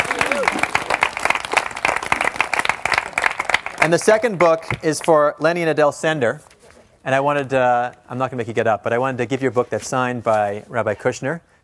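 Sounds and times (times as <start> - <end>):
crowd applauding loudly: 0.0 - 4.6
speech: 3.8 - 11.5.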